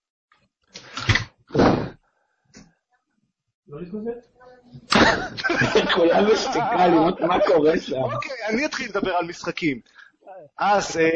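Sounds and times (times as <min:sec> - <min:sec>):
door being pushed shut: 0:00.9 - 0:02.0
speech: 0:03.7 - 0:11.1
laughter: 0:04.9 - 0:09.2.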